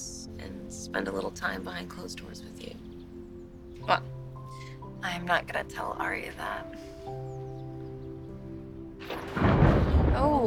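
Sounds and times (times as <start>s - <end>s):
speech: 0.9s - 2.9s, 3.9s - 4.2s, 5.0s - 7.3s
loud thunderclap: 9.0s - 10.4s.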